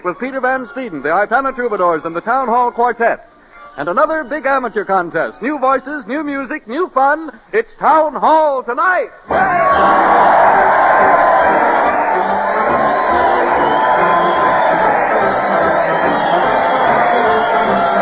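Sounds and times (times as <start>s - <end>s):
speech: 0.0s - 11.2s
crowd cheering: 9.3s - 17.9s.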